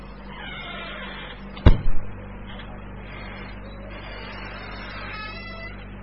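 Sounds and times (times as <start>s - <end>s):
dry door hinges in need of oil creaking: 0.1s - 1.8s, 3.1s - 5.9s.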